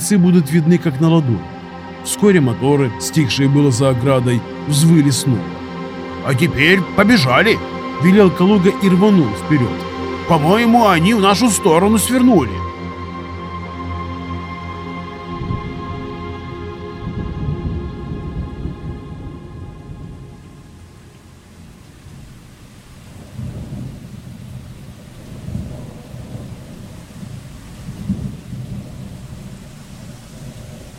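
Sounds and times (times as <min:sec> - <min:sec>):
cold rain falling steadily: 0:00.0 - 0:12.6, 0:15.3 - 0:30.9
speech: 0:00.1 - 0:05.6, 0:06.2 - 0:12.7
deep rolling thunder: 0:16.9 - 0:30.9.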